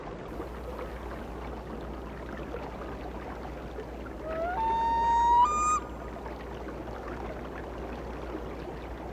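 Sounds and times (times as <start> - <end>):
low steady hum: 0.1 - 9.1
loon wailing: 4.2 - 5.9.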